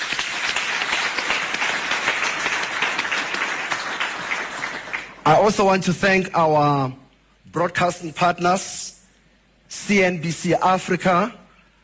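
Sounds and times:
audience applause: 0.0 - 5.4
speech: 5.3 - 7.0, 7.6 - 8.9, 9.8 - 11.4.

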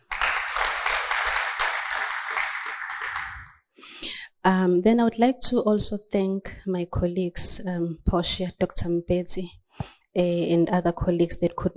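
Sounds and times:
audience applause: 0.0 - 3.6
speech: 4.4 - 11.7.

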